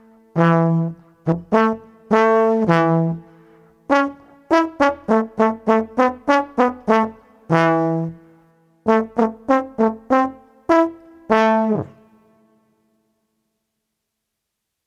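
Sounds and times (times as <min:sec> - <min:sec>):
street trombone playing a bouncy walk: 0:00.4 - 0:03.3, 0:03.9 - 0:08.2, 0:08.9 - 0:12.0.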